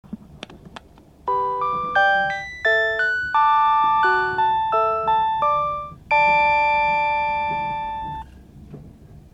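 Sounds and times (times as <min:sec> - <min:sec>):
chime: 0:01.3 - 0:08.3.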